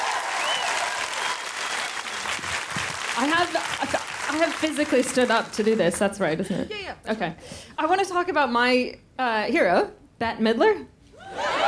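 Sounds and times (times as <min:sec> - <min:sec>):
comedy audience applause welcoming a comedian: 0:00.0 - 0:06.0
speech: 0:03.2 - 0:11.5.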